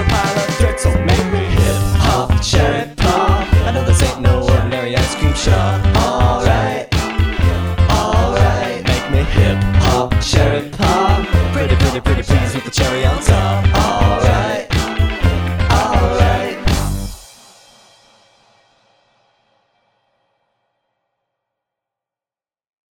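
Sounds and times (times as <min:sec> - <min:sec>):
hip hop music: 0:00.0 - 0:17.2.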